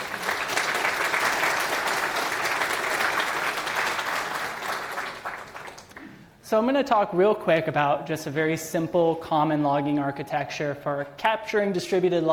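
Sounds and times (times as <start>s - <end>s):
audience clapping hands: 0.0s - 6.2s
speech: 6.5s - 12.3s.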